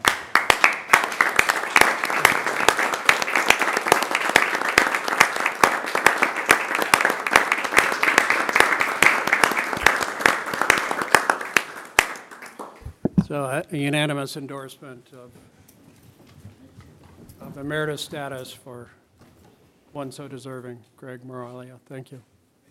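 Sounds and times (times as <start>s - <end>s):
standing ovation applause: 0.0s - 13.0s
speech: 13.3s - 15.6s, 17.6s - 19.0s, 19.9s - 22.3s.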